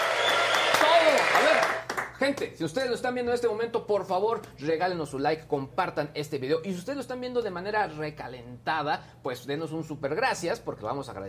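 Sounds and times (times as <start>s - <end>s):
applause: 0.0s - 2.5s
speech: 2.2s - 11.2s.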